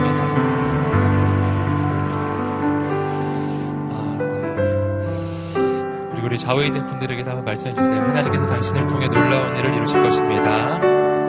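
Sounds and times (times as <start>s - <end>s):
audience applause: 0.0s - 5.5s
sustained musical tones: 0.0s - 11.2s
speech: 6.4s - 11.0s.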